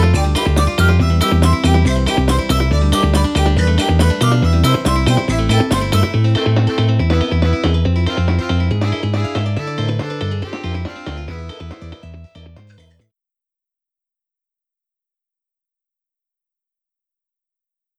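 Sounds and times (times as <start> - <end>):
country music: 0.0 - 12.6.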